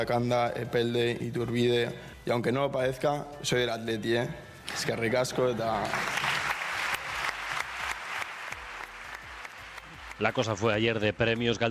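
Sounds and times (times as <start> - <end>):
speech: 0.0 - 6.2, 10.2 - 11.7
audience ovation at award ceremony: 5.8 - 10.8.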